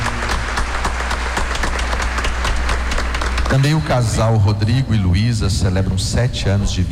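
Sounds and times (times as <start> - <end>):
congregation applauding a couple: 0.0 - 4.8
speech: 3.6 - 6.9.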